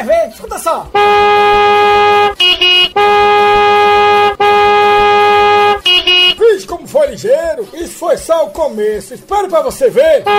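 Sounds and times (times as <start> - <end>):
speech: 0.0 - 1.8, 8.1 - 10.3
car horn honking: 0.9 - 6.4.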